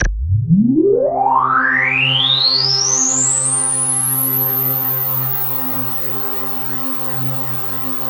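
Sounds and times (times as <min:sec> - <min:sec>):
KORG DW8000 vintage synthesizer keyboard: 0:00.0 - 0:05.2.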